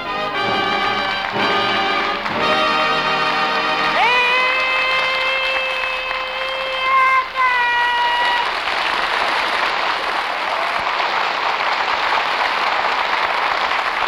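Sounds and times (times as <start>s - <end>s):
brassy band fanfare: 0.0s - 7.4s
studio audience applauding and cheering: 0.0s - 14.0s.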